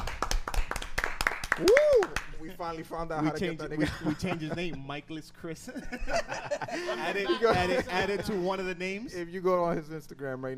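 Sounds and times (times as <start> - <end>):
hand clapping: 0.0 - 2.5
speech: 1.6 - 10.5
laughter: 3.4 - 5.0, 5.6 - 8.8.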